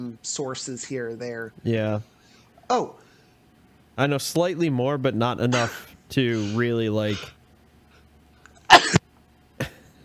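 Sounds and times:
speech: 0.0 - 3.0, 4.0 - 7.4
sneeze: 5.5 - 5.8, 8.7 - 9.0.

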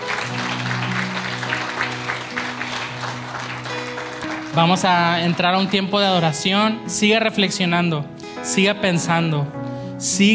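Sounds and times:
audience applause: 0.0 - 6.3
speech: 4.6 - 10.3.

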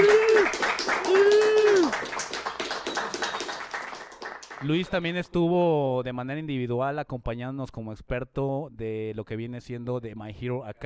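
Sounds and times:
audience applause: 0.0 - 4.9
speech: 4.6 - 10.8.

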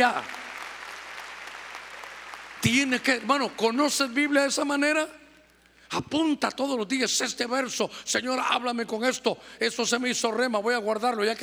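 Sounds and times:
speech: 0.0 - 0.4, 2.6 - 5.2, 5.9 - 11.4
audience applauding loudly: 0.0 - 3.8.

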